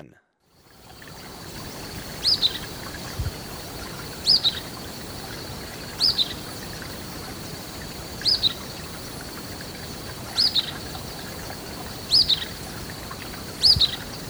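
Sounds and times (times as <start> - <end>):
golden-crowned flycatcher calling: 0.6 - 14.2.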